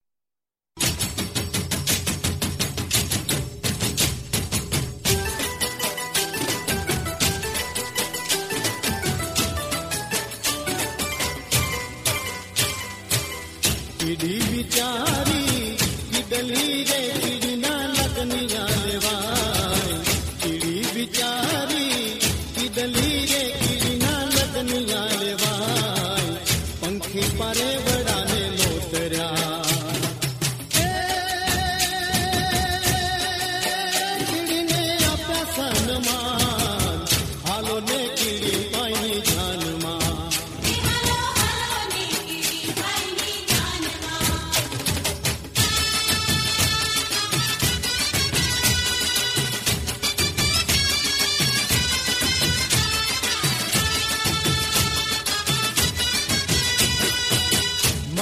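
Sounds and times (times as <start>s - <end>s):
Gujarati garba folk dance music: 0.8s - 58.1s.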